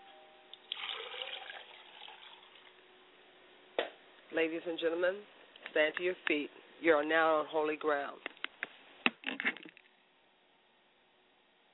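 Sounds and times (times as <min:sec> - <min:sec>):
liquid poured as libation: 0:00.5 - 0:02.8
speech: 0:04.3 - 0:08.3.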